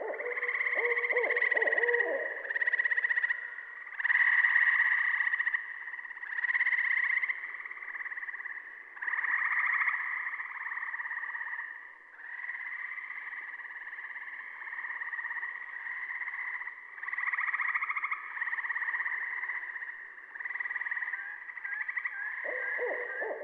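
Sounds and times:
Barred Owl hooting: 0.0 - 2.8, 22.4 - 23.4
Saw-whet Owl calling: 0.0 - 2.9, 21.6 - 23.4
Gray Treefrog calling: 0.0 - 23.4.

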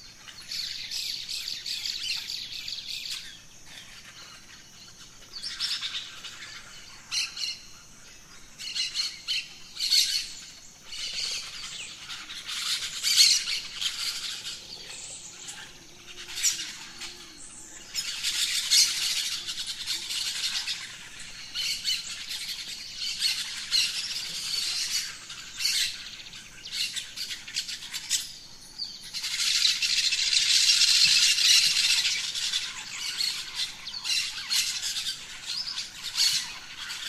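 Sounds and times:
faint insect hum: 0.0 - 37.0
birds squawking at dawn: 8.6 - 26.0, 29.2 - 37.0.

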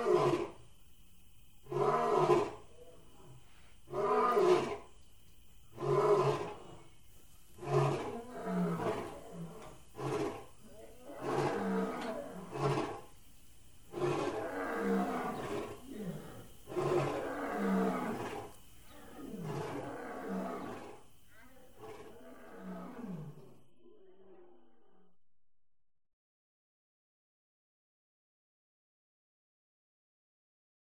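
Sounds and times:
big cat roaring: 0.0 - 0.6, 1.7 - 3.3, 3.9 - 4.8, 5.7 - 6.8, 7.6 - 13.1, 13.9 - 25.1
faint steady tone: 0.0 - 25.8.

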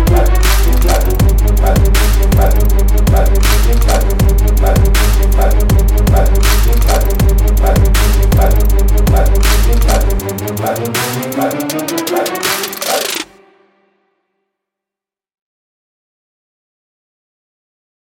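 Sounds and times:
instrumental music: 0.0 - 14.2.

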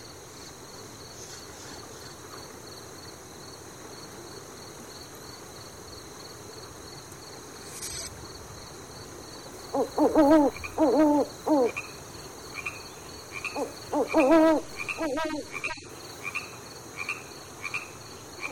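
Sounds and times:
animals at a riverside: 9.6 - 18.5.

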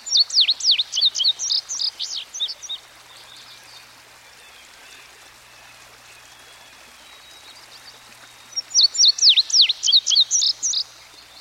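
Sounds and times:
indigo bunting song: 0.0 - 11.4.

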